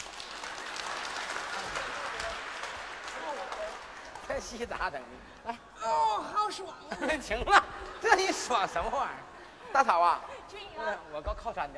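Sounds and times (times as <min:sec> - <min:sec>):
audience applause: 0:00.0 - 0:05.0
speech: 0:04.3 - 0:11.7.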